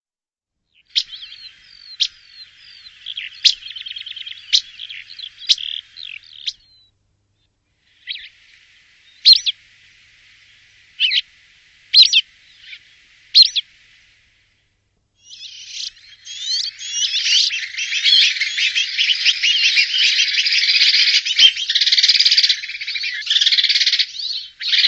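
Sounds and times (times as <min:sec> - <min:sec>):
bird calls: 0:00.7 - 0:09.6, 0:10.5 - 0:11.3, 0:11.9 - 0:13.7, 0:15.2 - 0:24.8.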